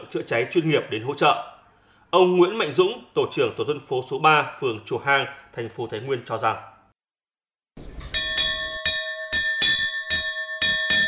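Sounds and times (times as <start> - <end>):
speech: 0.1 - 6.7
alarm gong being struck: 8.0 - 11.0.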